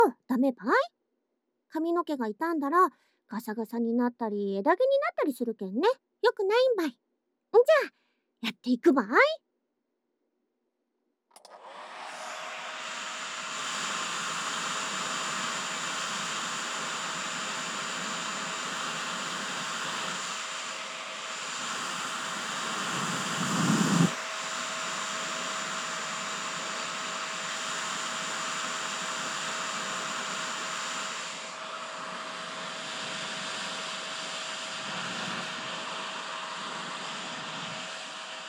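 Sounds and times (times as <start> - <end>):
speech: 0.0 - 1.0, 1.7 - 9.4
hair dryer blowing: 11.4 - 38.4.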